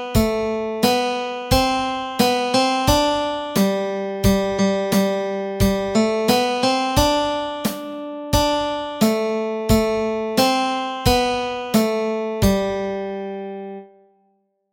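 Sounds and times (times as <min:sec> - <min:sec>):
nursery rhyme melody with chords: 0:00.0 - 0:14.2.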